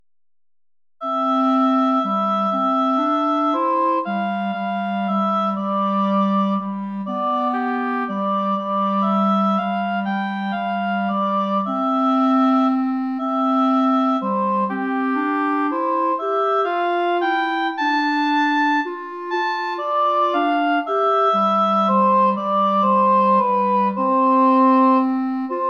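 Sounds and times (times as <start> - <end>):
courtly dance for oboe and clarinet: 1.0 - 25.6.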